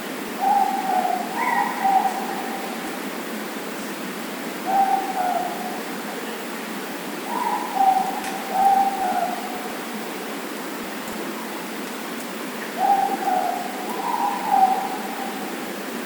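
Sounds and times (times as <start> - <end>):
moreporks calling: 0.1 - 3.2, 4.4 - 10.2, 12.4 - 16.0.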